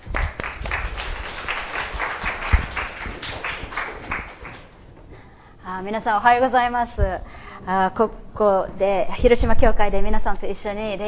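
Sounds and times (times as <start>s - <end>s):
audience applause welcoming a speaker: 0.0s - 4.7s
speech: 5.8s - 11.0s.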